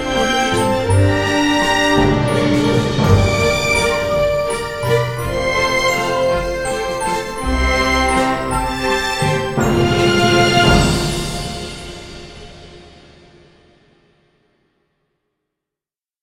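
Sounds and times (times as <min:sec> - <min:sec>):
royal classical dance music: 0:00.0 - 0:12.7.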